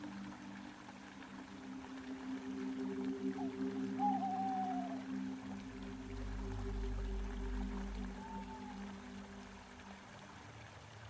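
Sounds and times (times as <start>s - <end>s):
steady layered low hum: 0.0s - 10.6s
waterfall water flowing: 0.0s - 11.0s
deep rumble: 5.7s - 9.8s.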